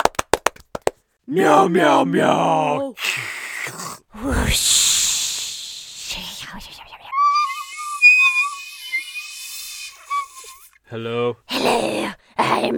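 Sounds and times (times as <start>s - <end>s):
speech: 1.3s - 4.8s, 6.5s - 6.9s, 10.9s - 12.7s
breathy groans and hissing vocal noises: 2.9s - 10.7s, 11.5s - 12.7s
whistled theme song melody: 7.1s - 9.0s.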